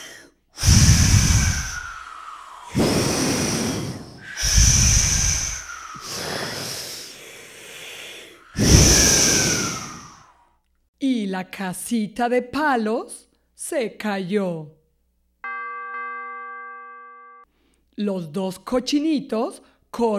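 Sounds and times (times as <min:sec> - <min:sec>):
voice imitating a wolf blowing hard: 0:00.0 - 0:10.3
speech: 0:11.3 - 0:14.8, 0:18.0 - 0:20.1.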